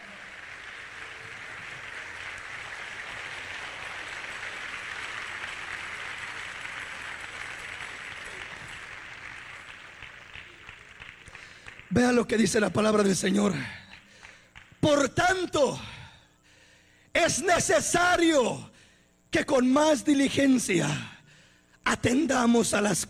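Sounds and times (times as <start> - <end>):
audience clapping hands: 0.0 - 15.1
speech: 11.9 - 13.8, 17.4 - 18.7, 19.3 - 21.1, 21.9 - 23.0.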